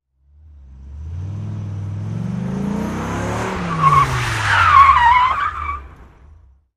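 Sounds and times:
sports car accelerating quickly: 0:00.2 - 0:06.6.

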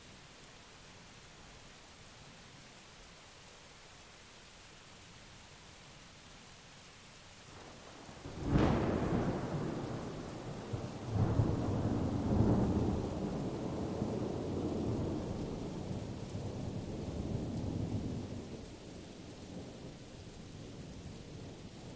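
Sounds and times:
rain at Blue Mountain Lake Adirondacks New York: 0:00.0 - 0:21.9
continuous thunder at Blue Mountain Lake Adirondacks New York: 0:07.5 - 0:21.9.

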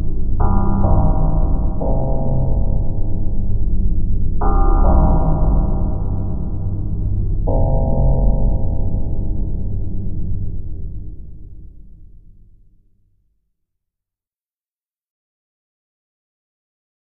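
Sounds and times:
huge deep dark bell: 0:00.0 - 0:12.6.

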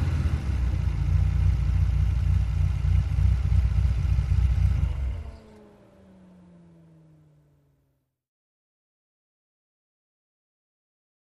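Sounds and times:
sports car driving at 25 to 35 mph: 0:00.0 - 0:08.1.

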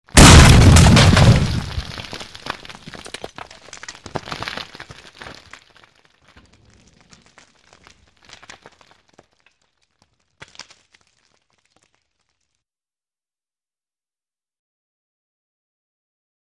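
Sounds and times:
small explosion: 0:00.1 - 0:03.1.

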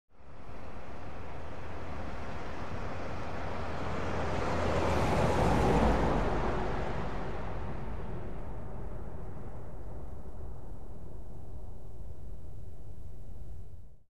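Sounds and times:
car passing by at medium speed: 0:00.3 - 0:11.4.

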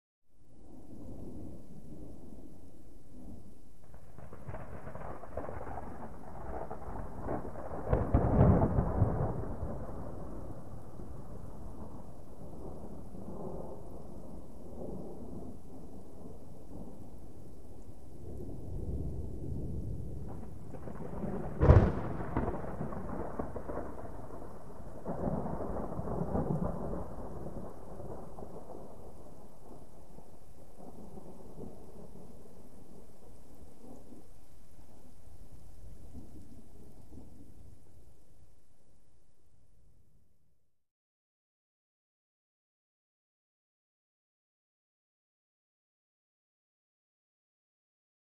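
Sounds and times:
medium distant thunder: 0:00.6 - 0:37.9.

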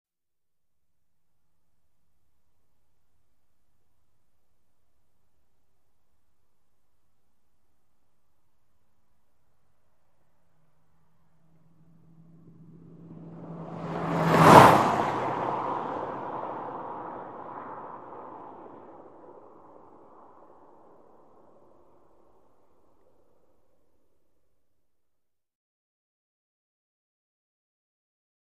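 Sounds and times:
sedan passing by right to left at 100mph: 0:10.5 - 0:23.1.

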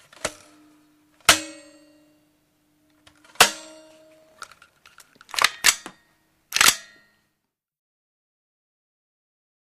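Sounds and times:
handgun reload mechanism: 0:04.4 - 0:07.0.

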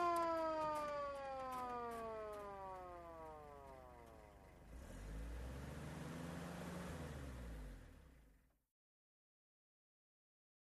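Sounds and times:
fire truck moving slowly: 0:00.0 - 0:08.4.

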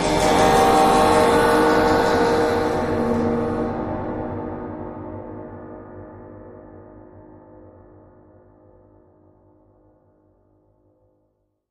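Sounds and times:
high metal cymbal: 0:00.0 - 0:05.5
eerie ambience: 0:00.0 - 0:07.3.

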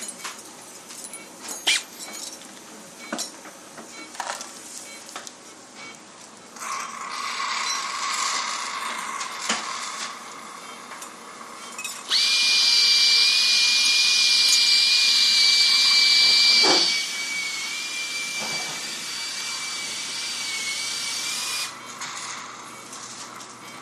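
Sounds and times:
bone drills in an operating room: 0:01.6 - 0:01.9, 0:06.6 - 0:10.2, 0:12.0 - 0:22.5.

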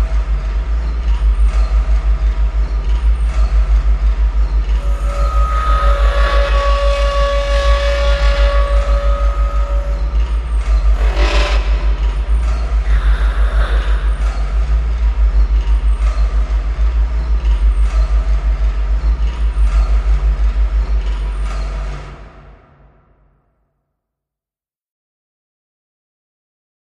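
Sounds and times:
industrial machine room ambience: 0:00.0 - 0:23.3.

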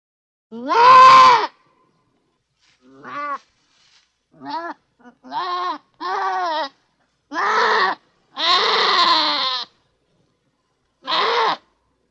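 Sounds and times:
goat bleating: 0:00.6 - 0:01.5, 0:02.9 - 0:03.5, 0:04.4 - 0:09.8, 0:11.0 - 0:11.8.

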